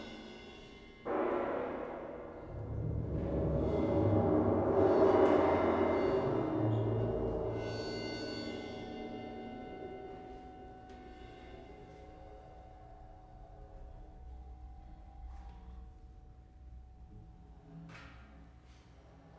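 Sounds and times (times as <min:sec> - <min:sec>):
music for percussion ensemble: 0:00.0 - 0:12.9.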